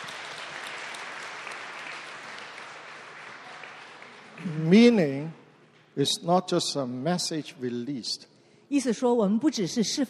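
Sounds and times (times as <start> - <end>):
audience hand clapping: 0.0 - 5.9
speech: 4.4 - 5.4, 6.0 - 10.0.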